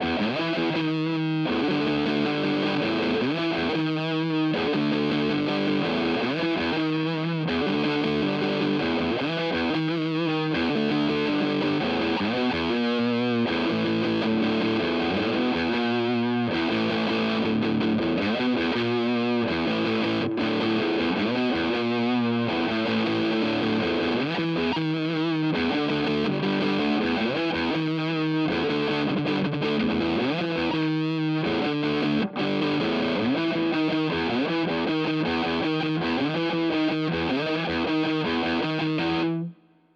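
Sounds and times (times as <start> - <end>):
Hagstrom guitar with Zerre bridge: 0.0 - 39.9.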